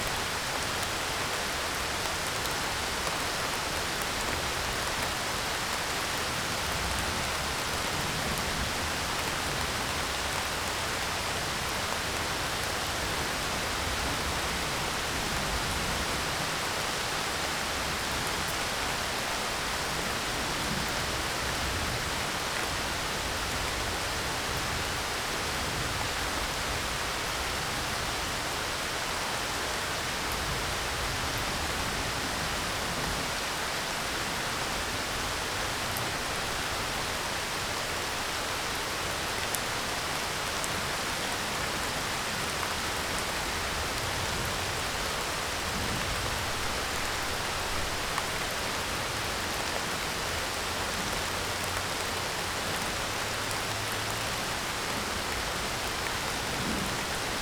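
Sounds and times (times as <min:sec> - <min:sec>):
rain in an alley: 0:00.0 - 0:57.3
wind in an alley: 0:00.0 - 0:57.3.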